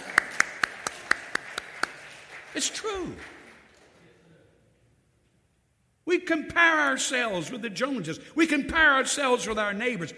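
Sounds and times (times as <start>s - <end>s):
audience clapping: 0.0s - 4.1s
speech: 2.6s - 3.4s, 6.2s - 10.1s.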